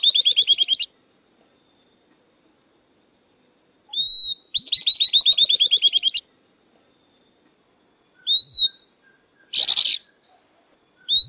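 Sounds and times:
southern beardless-tyrannulet song: 0.0 - 0.9, 3.9 - 6.3, 8.2 - 11.2.

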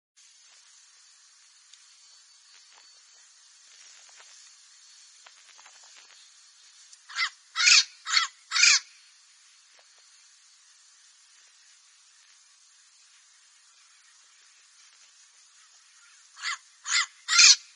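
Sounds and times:
parrot giving harsh raspy squawks: 7.1 - 8.9, 16.4 - 17.7.

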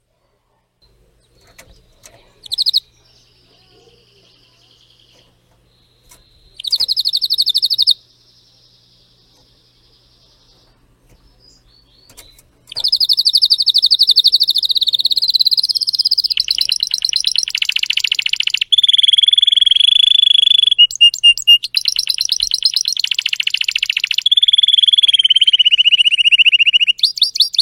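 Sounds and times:
Spanish Timbrado canary song: 0.8 - 27.6
faint clicks: 12.0 - 13.0.

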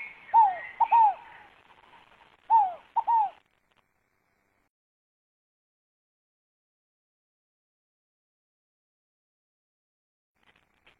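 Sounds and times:
scaled dove cooing: 0.0 - 1.9, 2.5 - 3.4
faint bird chatter: 0.0 - 3.6.

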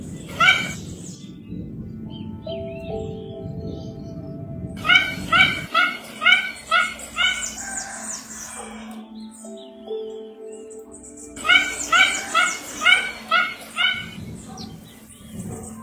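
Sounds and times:
Mandarin duck yelping calls: 0.3 - 0.8, 4.8 - 7.7, 11.4 - 14.2.

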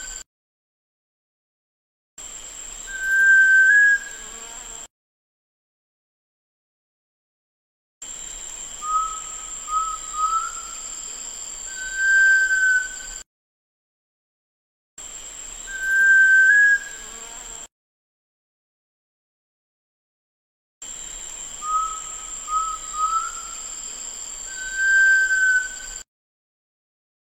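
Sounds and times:
sunbittern whistling: 2.9 - 4.2, 8.8 - 10.9, 11.7 - 13.1, 15.7 - 17.0, 21.6 - 23.7, 24.5 - 26.0.

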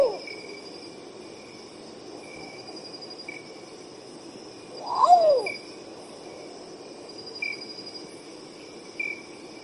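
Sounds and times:
long-tailed potoo singing wailing whistles: 4.8 - 5.6.

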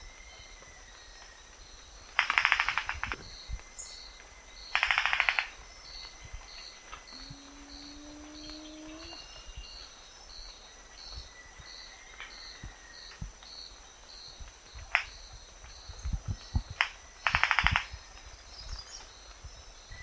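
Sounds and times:
Rufous-vented ground cuckoo bill clapping: 2.2 - 3.1, 4.7 - 5.5, 6.9 - 9.2, 16.8 - 17.9.

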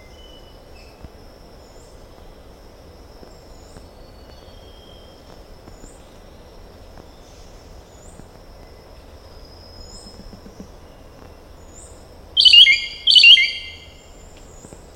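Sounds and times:
green oriole singing whistled notes: 12.4 - 14.1.

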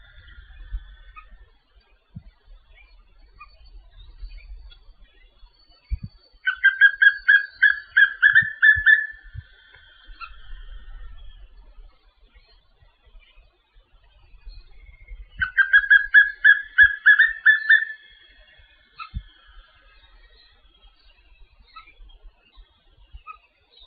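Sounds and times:
papinho-amarelo whistling fast evenly pitched notes: 6.5 - 9.3, 15.3 - 18.2.

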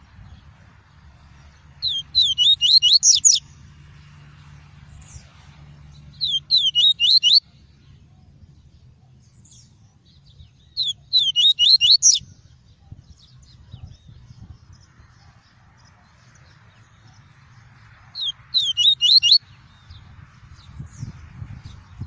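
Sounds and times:
double-collared seedeater singing high whistled notes: 1.8 - 3.4, 6.1 - 7.5, 10.4 - 14.2, 18.2 - 19.4.

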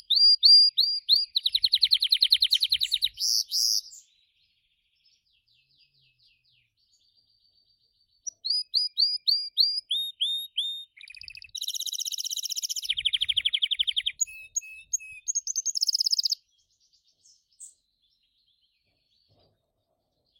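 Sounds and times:
Gloster canary singing: 0.0 - 4.1, 8.2 - 17.0.

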